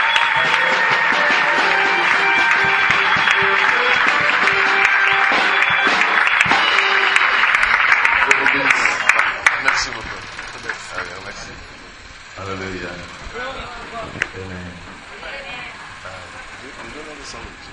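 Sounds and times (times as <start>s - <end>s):
church congregation applauding: 0.0s - 11.6s
sustained musical tones: 0.0s - 12.4s
voices: 0.0s - 17.7s.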